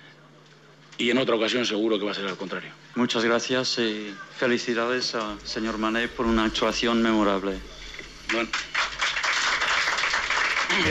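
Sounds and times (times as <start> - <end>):
speech: 1.0 - 8.8
journalists applauding in the press room at the Westfalen: 8.2 - 10.8.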